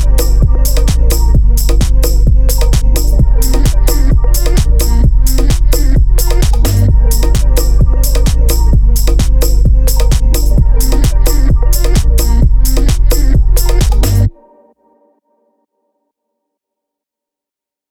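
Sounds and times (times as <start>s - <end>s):
feel-good beats in G minor: 0.0s - 14.3s.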